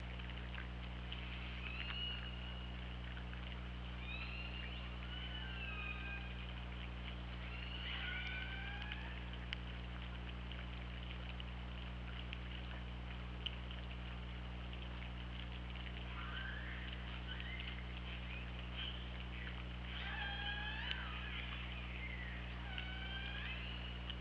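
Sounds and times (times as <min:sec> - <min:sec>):
steady low underwater hum: 0:00.0 - 0:24.1
killer whale calls: 0:04.0 - 0:06.4, 0:07.4 - 0:09.3, 0:16.1 - 0:17.8, 0:19.9 - 0:24.0.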